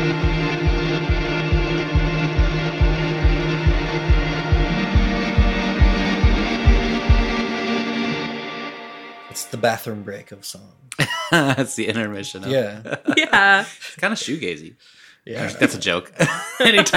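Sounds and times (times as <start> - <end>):
soft four-on-the-floor kick drum beat: 0.0 - 7.4
speech: 9.6 - 16.9
laughter: 10.9 - 14.6, 15.3 - 16.9.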